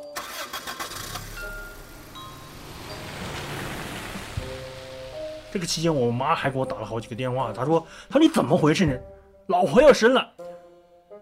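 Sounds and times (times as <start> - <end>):
car engine cranking and catching: 0.0 - 8.1
speech: 5.5 - 10.4.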